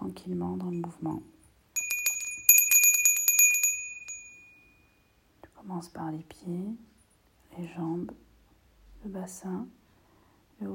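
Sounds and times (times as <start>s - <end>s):
speech: 0.2s - 1.4s, 5.6s - 6.9s, 7.6s - 8.2s, 9.0s - 9.8s, 10.6s - 10.7s
small bell rung to close a guided relaxation session: 0.8s - 5.2s.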